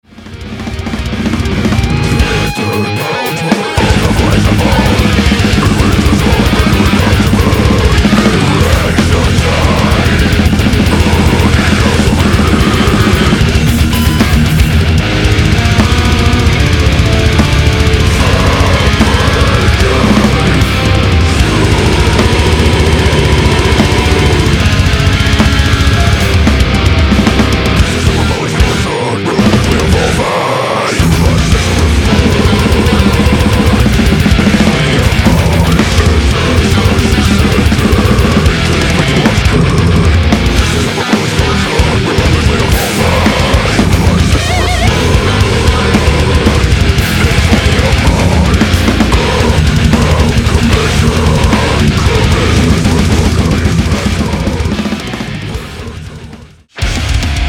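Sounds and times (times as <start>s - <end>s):
metal music: 0.0s - 57.4s.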